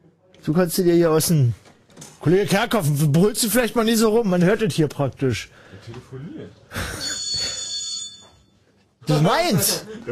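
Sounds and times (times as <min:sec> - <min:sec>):
speech: 0:00.4 - 0:01.6, 0:02.2 - 0:07.0, 0:09.1 - 0:10.0
mobile phone ringing: 0:06.9 - 0:08.7.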